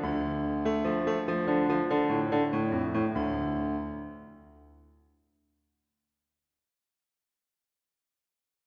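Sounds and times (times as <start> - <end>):
piano concerto: 0.0 - 4.8.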